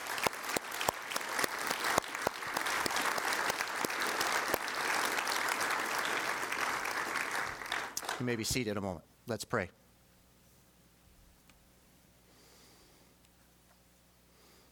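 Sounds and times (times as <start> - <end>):
audience applause: 0.0 - 8.5
speech: 8.2 - 9.8.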